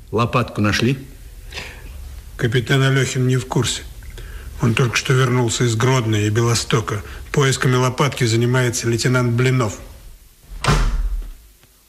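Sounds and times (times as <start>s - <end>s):
speech: 0.1s - 1.8s, 2.4s - 3.9s, 4.6s - 9.9s
door slamming shut: 10.5s - 11.4s.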